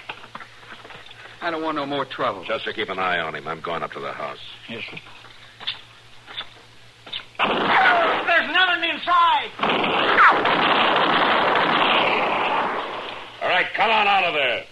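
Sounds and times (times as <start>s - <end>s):
speech: 1.4s - 5.2s, 13.6s - 14.7s
gunshots in a radio drama shootout: 7.4s - 8.4s, 9.6s - 13.4s.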